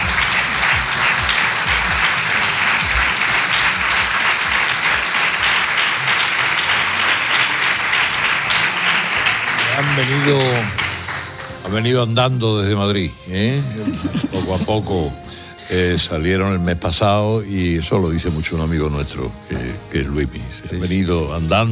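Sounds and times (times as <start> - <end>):
audience applause: 0.0 - 11.9
speech: 10.0 - 10.8, 11.7 - 21.7
laughter: 13.6 - 15.2.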